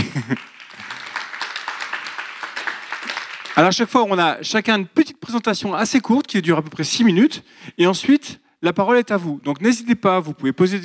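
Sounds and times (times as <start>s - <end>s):
laughter: 0.0s - 1.3s
audience applause: 0.0s - 4.0s
speech: 0.2s - 0.5s, 3.6s - 10.8s.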